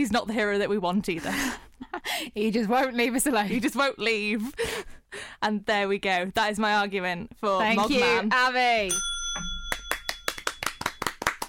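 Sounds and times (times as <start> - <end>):
speech: 0.0 - 9.5
two people clapping in a studio: 9.7 - 11.4.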